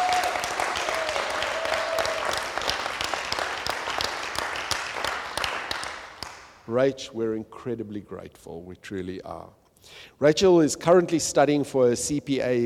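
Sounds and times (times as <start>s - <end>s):
audience applause: 0.0s - 6.5s
speech: 6.7s - 12.6s.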